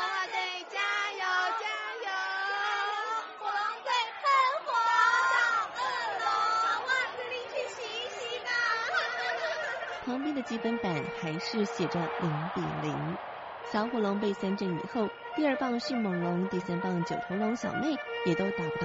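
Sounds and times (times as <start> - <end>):
baseball spectators cheering and shouting: 0.0 - 18.8
laughter: 1.2 - 13.2
speech: 10.1 - 18.8.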